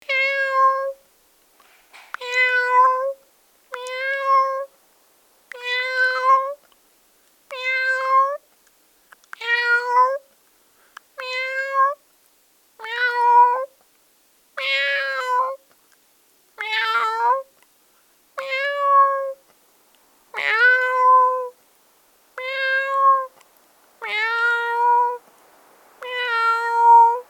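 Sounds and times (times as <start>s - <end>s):
domestic cat meowing: 0.1s - 1.0s, 2.1s - 4.7s, 5.5s - 6.6s, 7.5s - 8.4s, 9.4s - 10.2s, 11.2s - 12.0s, 12.8s - 13.7s, 14.6s - 15.6s, 16.6s - 17.5s, 18.4s - 19.4s, 20.3s - 21.6s, 22.4s - 23.4s, 24.0s - 25.2s, 26.0s - 27.2s.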